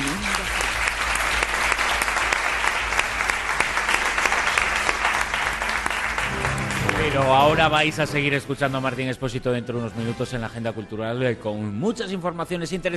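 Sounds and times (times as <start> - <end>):
audience applause: 0.0 - 8.4
speech: 7.4 - 12.9.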